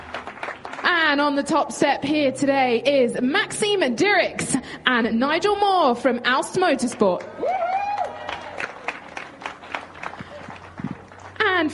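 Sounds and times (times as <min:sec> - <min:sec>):
round of applause for podium winners: 0:00.0 - 0:00.9, 0:07.2 - 0:11.4
speech: 0:01.1 - 0:07.6.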